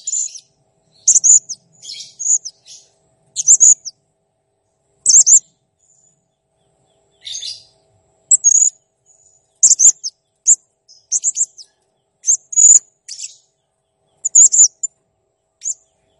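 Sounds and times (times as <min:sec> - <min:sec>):
blue-crowned hanging parrot chirping in full song: 0:00.0 - 0:03.9, 0:05.1 - 0:05.4, 0:07.2 - 0:07.7, 0:08.3 - 0:08.7, 0:09.6 - 0:13.4, 0:14.2 - 0:14.9.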